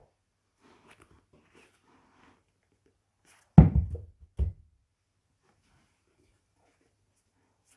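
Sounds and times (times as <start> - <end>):
book dropping on carpet: 3.6 - 4.6.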